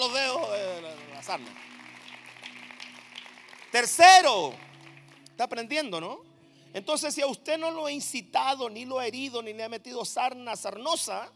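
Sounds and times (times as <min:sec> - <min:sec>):
audience clapping: 0:00.0 - 0:05.8
speech: 0:01.3 - 0:01.8, 0:03.7 - 0:04.7, 0:05.4 - 0:11.3.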